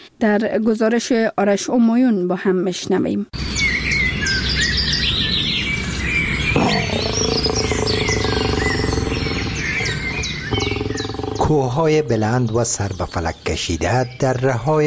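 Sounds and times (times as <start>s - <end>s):
speech: 0.2s - 3.6s, 11.5s - 14.8s
wild birds chirping: 3.4s - 14.8s
lower rough animal-like sound: 6.5s - 12.0s.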